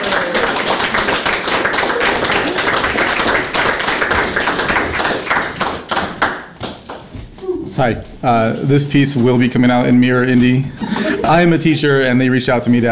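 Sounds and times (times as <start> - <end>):
crowd applauding: 0.0 - 7.0
speech: 7.8 - 12.9
laughter: 10.6 - 12.4.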